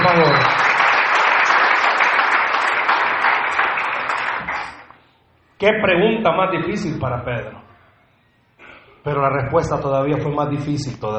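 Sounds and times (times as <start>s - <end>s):
audience applauding: 0.0s - 5.0s
speech: 5.6s - 7.6s, 9.0s - 11.1s.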